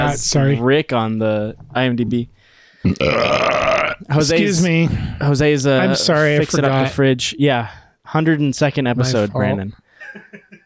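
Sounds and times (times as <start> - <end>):
speech: 0.1 - 10.6
loud drawn-out burp: 2.8 - 4.1.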